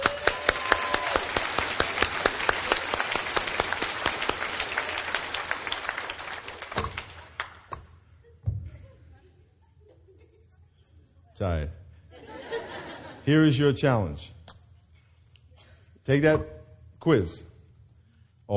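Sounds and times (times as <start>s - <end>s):
audience at a Bible quiz session clapping: 0.0s - 7.7s
speech: 11.4s - 11.8s, 13.3s - 14.4s, 16.1s - 17.5s
laughter: 12.1s - 13.3s.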